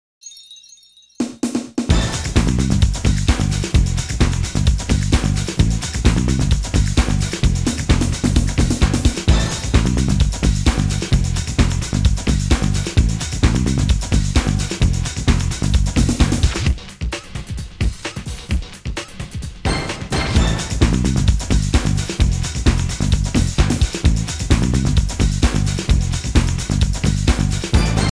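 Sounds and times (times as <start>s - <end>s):
house music groove: 1.9s - 19.6s, 20.3s - 28.1s.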